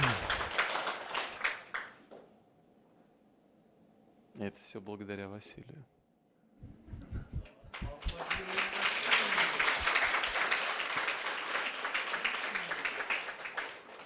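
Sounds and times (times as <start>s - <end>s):
audience applause: 0.0s - 2.0s, 7.7s - 14.0s
speech: 4.4s - 6.0s.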